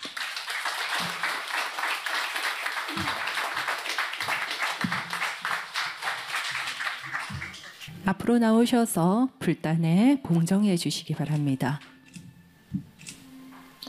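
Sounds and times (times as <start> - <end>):
audience applause: 0.0 - 7.9
speech: 8.0 - 11.9.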